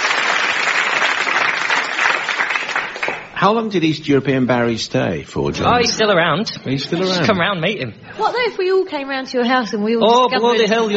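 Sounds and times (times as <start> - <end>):
crowd clapping: 0.0 - 3.4
speech: 3.4 - 10.9.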